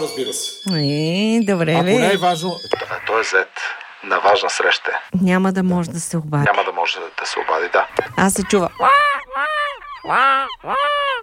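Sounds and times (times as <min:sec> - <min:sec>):
speech: 0:00.0 - 0:11.2
voice imitating a seagull call: 0:08.8 - 0:11.2.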